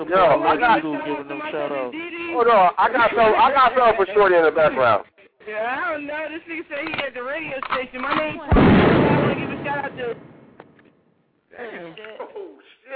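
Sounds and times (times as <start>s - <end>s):
speech: 0.0s - 10.4s, 11.6s - 12.9s
loud gunshot sound effect: 8.5s - 10.6s.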